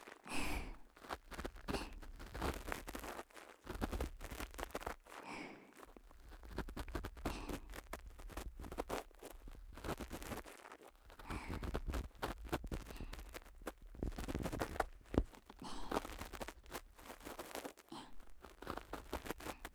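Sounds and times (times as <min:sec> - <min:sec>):
ear cleaning ASMR: 0:00.3 - 0:19.7.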